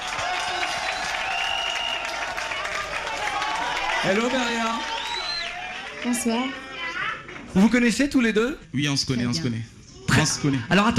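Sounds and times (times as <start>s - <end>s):
audience applause: 0.0s - 7.8s
speech: 4.0s - 4.9s, 6.0s - 6.6s, 7.5s - 10.9s.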